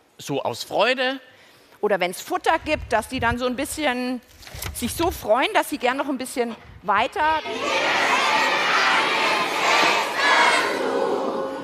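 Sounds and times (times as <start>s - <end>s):
speech: 0.2s - 8.0s
crowd shouting together: 7.4s - 11.6s.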